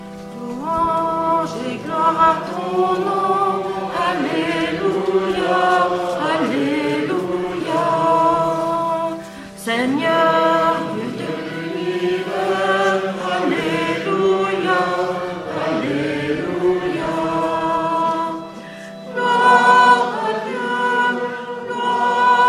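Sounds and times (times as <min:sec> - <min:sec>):
entrance chant: 0:00.3 - 0:22.4.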